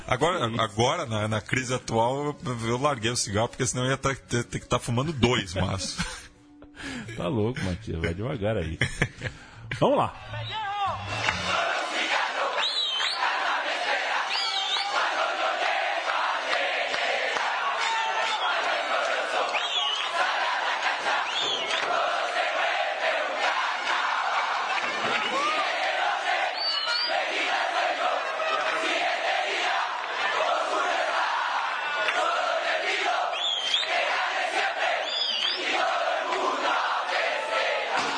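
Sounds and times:
speech: 0.1s - 11.2s
laughter: 5.2s - 6.4s, 7.6s - 10.0s
football fans chanting in stadium: 11.0s - 38.1s.

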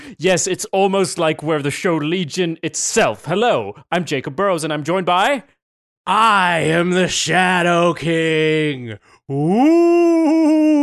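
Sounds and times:
speech: 0.1s - 10.8s
person imitating a dog howl: 9.3s - 10.8s.

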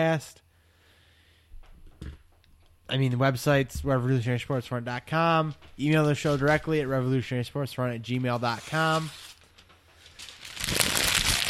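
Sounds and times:
speech: 0.0s - 0.4s, 2.9s - 9.3s
page being ripped out of a notebook: 8.4s - 11.4s.

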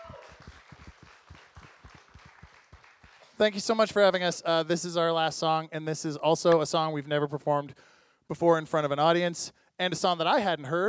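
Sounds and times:
audience applause: 0.0s - 3.6s
speech: 3.4s - 10.8s.

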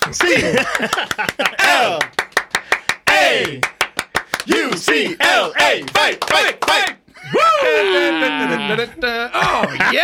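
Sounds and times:
hand clapping: 0.0s - 7.0s
laughter: 0.1s - 2.0s, 7.1s - 10.0s
speech: 0.1s - 2.2s, 3.3s - 3.7s, 4.4s - 10.0s.

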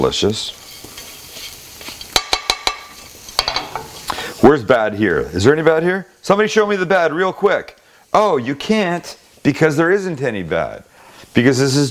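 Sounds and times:
speech: 0.0s - 0.6s, 4.6s - 11.8s
butter sizzling in a pan with Thanksgiving leftovers: 0.0s - 11.8s
utensil clinking against a pan: 0.8s - 3.9s.

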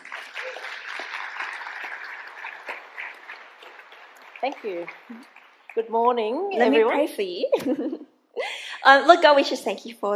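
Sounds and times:
audience applause at a church service welcoming a speaker: 0.0s - 6.4s
speech: 4.4s - 8.1s, 8.8s - 10.1s.

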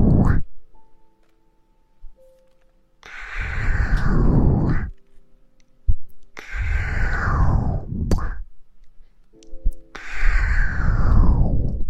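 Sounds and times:
slow breaths blown into the ear: 0.0s - 0.5s, 3.0s - 5.0s, 6.4s - 8.5s, 9.9s - 11.8s
faint hums: 0.0s - 1.0s, 3.1s - 5.0s, 5.9s - 11.8s.

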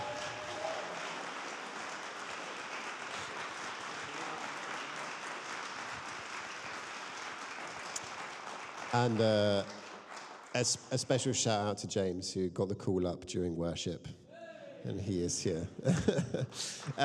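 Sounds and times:
audience applauding: 0.0s - 11.1s, 16.6s - 17.0s
speech: 8.9s - 9.8s, 10.6s - 14.2s, 14.8s - 17.0s
laughter: 14.9s - 17.0s.

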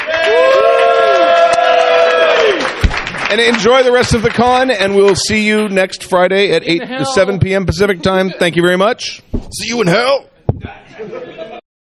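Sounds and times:
studio audience at a convention stage cheering with whoops: 0.0s - 2.8s
speech: 3.3s - 11.5s
soft thump: 9.3s - 9.6s, 10.5s - 10.8s
laughter: 10.6s - 11.6s.

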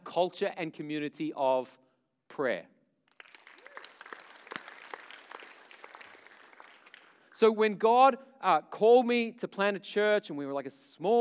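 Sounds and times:
speech: 0.2s - 2.7s, 7.4s - 11.1s
audience clapping: 3.1s - 7.4s.

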